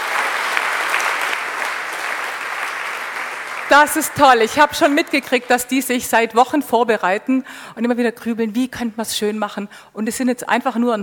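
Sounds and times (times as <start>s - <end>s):
audience applause: 0.0s - 5.7s
speech: 3.7s - 11.0s.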